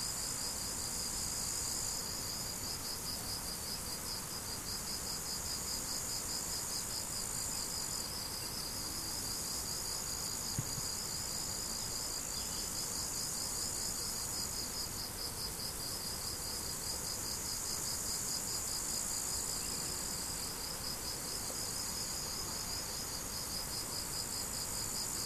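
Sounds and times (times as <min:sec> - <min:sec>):
crickets chirping: 0:00.0 - 0:25.2
high insect buzz: 0:00.0 - 0:25.2.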